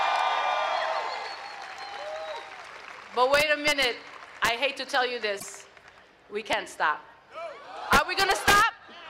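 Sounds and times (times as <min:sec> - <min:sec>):
audience applause: 0:00.0 - 0:03.4
speech: 0:03.2 - 0:05.6, 0:06.3 - 0:07.1, 0:08.1 - 0:08.6.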